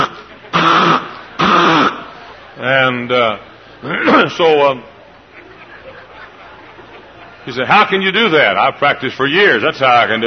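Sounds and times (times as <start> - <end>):
laughter: 0.0 - 1.4, 4.9 - 8.0
person vocally imitating a nervous Chihuahua snorting: 0.0 - 2.1
speech: 2.6 - 4.9, 7.4 - 10.2.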